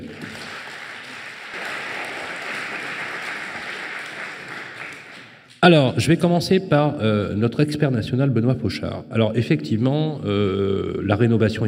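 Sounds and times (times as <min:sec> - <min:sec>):
audience applause for guests: 0:00.0 - 0:05.5
speech: 0:05.6 - 0:11.6.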